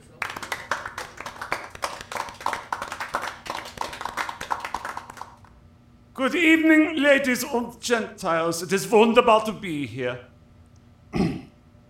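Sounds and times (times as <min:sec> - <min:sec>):
audience applause: 0:00.1 - 0:05.5
speech: 0:06.2 - 0:10.3.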